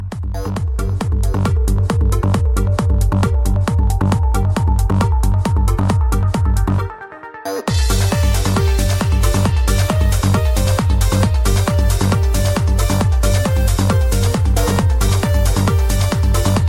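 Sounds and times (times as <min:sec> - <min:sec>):
beats: 0:00.0 - 0:06.8, 0:07.7 - 0:16.6.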